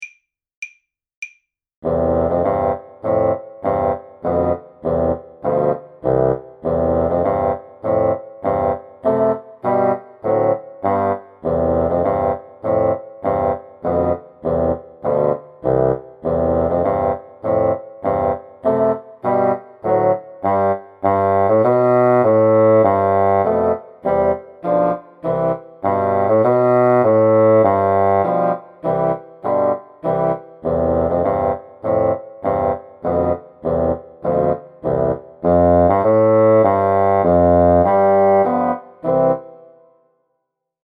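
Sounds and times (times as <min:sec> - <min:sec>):
bassoon trio playing a soldiers' march: 0:01.8 - 0:39.7.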